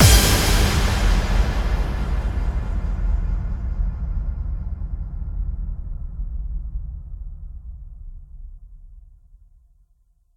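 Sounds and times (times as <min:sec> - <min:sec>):
bass drum kick with reverb: 0:00.0 - 0:07.3.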